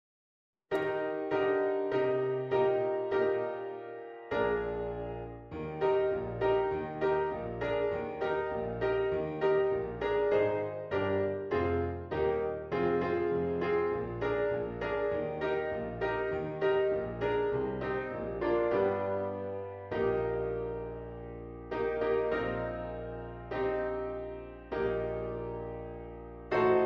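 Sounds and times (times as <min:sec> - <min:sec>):
piano: 0:00.7 - 0:26.8.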